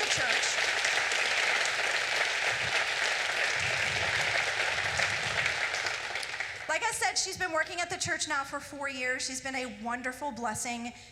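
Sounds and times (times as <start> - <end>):
crowd applause: 0.0 - 6.8
speech: 7.3 - 11.1.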